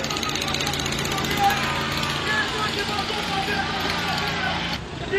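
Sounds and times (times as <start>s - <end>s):
tractor engine running at roadworks: 0.0s - 5.0s.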